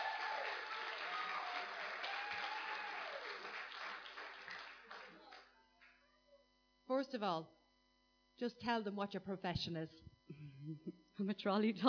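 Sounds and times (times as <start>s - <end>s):
applause: 0.0s - 6.0s
speech: 7.0s - 7.6s, 8.4s - 11.8s.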